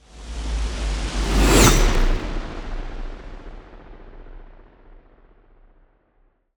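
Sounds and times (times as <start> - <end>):
ice spell cold whooshes: 1.0 - 2.5.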